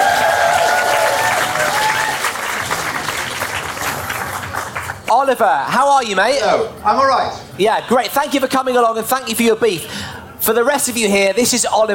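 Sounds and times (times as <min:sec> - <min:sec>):
audience applause: 0:00.0 - 0:05.1
speech: 0:05.3 - 0:11.9.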